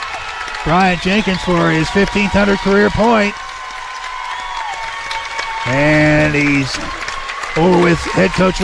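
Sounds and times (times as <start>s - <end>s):
crowd applauding in a gym: 0.0s - 8.6s
speech: 0.6s - 3.4s, 5.6s - 7.0s, 7.6s - 8.6s.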